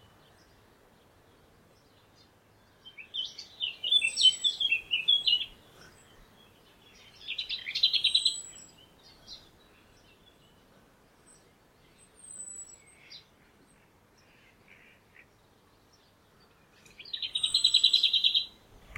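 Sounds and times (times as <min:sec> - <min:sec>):
lesser whitethroat call: 0:01.8 - 0:18.9.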